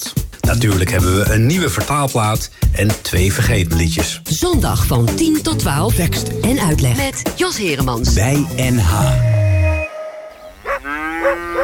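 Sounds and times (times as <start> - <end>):
speech: 0.0 - 9.4
cows mooing in the countryside: 9.1 - 11.6.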